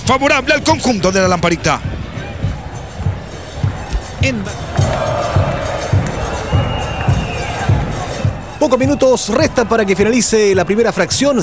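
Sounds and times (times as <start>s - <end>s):
speech: 0.1s - 2.0s, 4.2s - 5.3s, 8.6s - 11.4s
regular low thumps: 1.2s - 10.8s
stadium crowd applauding a long-range shot: 4.6s - 11.4s.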